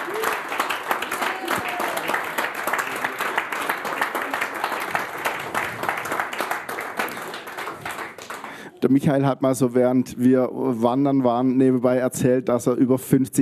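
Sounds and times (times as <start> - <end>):
audience applause: 0.0 - 8.8
speech: 8.8 - 13.4.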